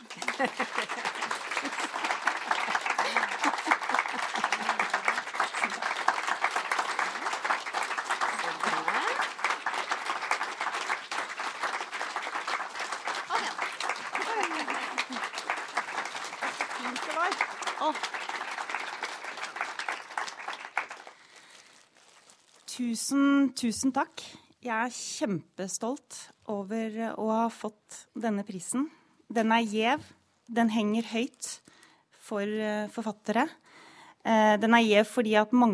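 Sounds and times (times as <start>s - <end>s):
laughter: 0.0s - 7.5s, 13.2s - 17.2s
audience applause: 0.0s - 21.3s
speech: 0.4s - 0.6s, 22.9s - 31.5s, 32.3s - 33.6s, 34.3s - 35.7s.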